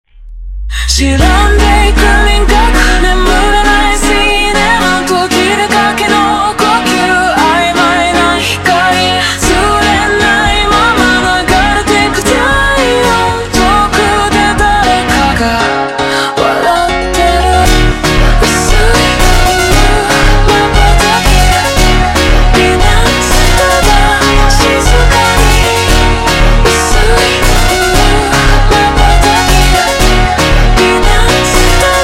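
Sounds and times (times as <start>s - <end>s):
super slowed montagem music: 0.0s - 32.0s.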